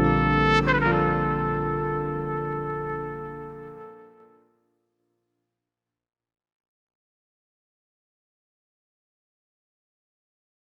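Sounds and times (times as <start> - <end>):
office background music: 0.0 - 4.2.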